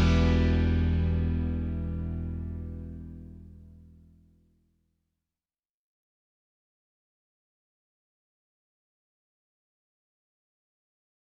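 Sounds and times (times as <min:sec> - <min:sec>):
minor melody without guitar: 0:00.0 - 0:03.9.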